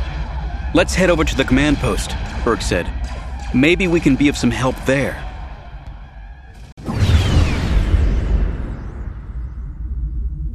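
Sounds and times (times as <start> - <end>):
speech: 0.7 - 5.2
blaster fire in a battle: 6.6 - 10.4.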